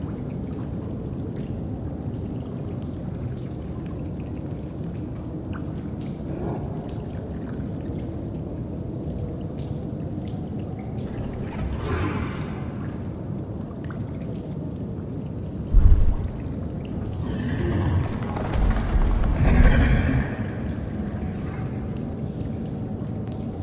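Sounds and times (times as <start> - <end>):
cave ambience: 0.0 - 23.6.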